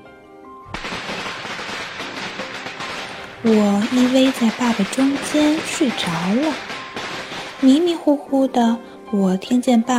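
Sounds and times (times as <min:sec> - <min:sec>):
firecrackers crackling: 0:00.7 - 0:08.6
speech: 0:03.4 - 0:06.7, 0:07.6 - 0:09.9.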